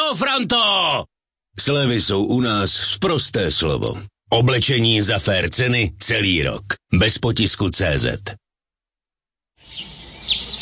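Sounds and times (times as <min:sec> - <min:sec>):
speech: 0:00.1 - 0:08.4
birdsong: 0:09.6 - 0:10.6
forest ambience: 0:09.6 - 0:10.6.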